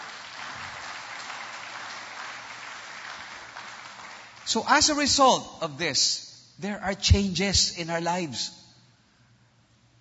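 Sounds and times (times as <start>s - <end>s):
congregation applauding in church: 0.0s - 5.1s
speech: 4.5s - 8.6s.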